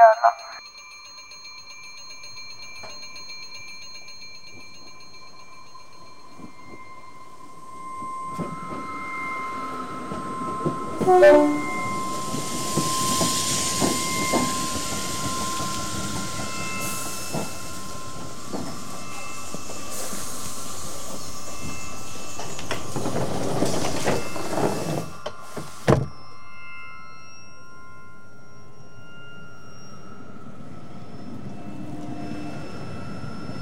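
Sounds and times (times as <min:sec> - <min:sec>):
sustained tonal squeal of arriving train: 0:05.4 - 0:33.5
train arriving at platform 7 of a railway station: 0:05.8 - 0:26.2.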